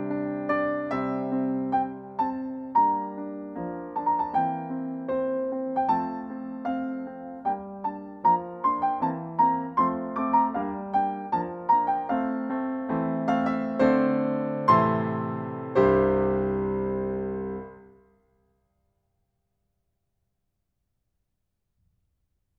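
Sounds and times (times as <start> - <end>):
Tibetan melody on piano: 0.0 - 18.0.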